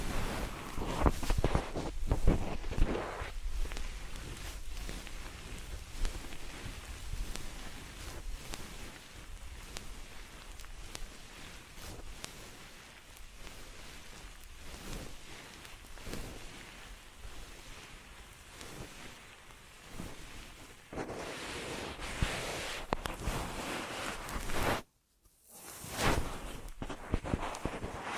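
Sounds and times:
ear massage rubbing and brushing against the microphone: 0.0s - 28.1s.

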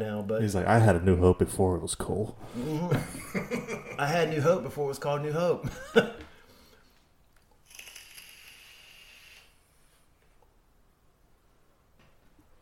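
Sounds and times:
speech: 0.0s - 6.2s
laughter: 2.7s - 4.2s
vape crackling while puffed: 7.6s - 10.0s.

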